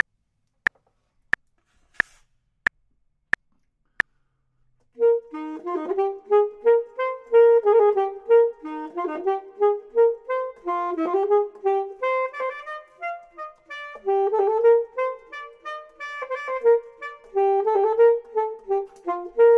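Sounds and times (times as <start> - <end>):
clarinet: 5.0 - 19.5
saxophone: 5.0 - 19.5.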